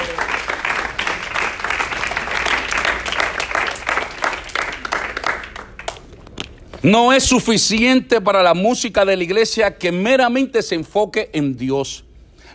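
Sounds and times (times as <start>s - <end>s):
audience applause: 0.0s - 6.2s
speech: 6.8s - 12.1s.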